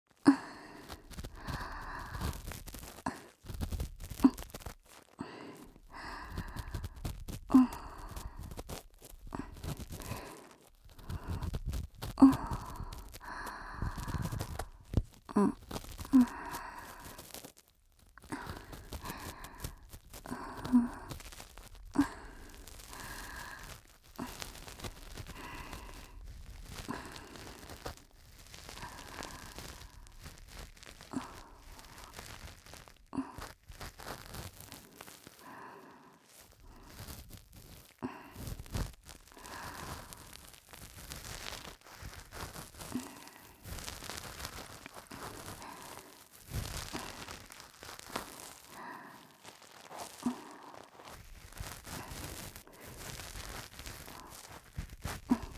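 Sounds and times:
ear cleaning in the right ear: 0:00.2 - 0:55.5.

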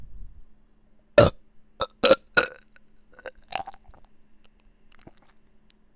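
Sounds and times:
burping: 0:01.2 - 0:04.0.

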